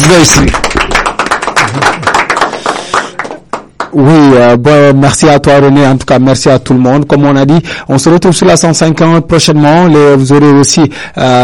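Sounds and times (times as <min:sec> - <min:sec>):
loud applause from a group: 0:00.0 - 0:03.9
speech: 0:00.1 - 0:00.8, 0:04.0 - 0:11.4.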